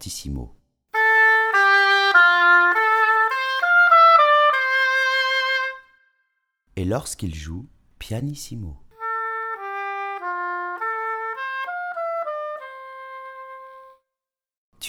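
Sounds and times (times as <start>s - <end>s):
oboe playing fortissimo and pianissimo: 1.0s - 6.0s, 9.0s - 14.0s.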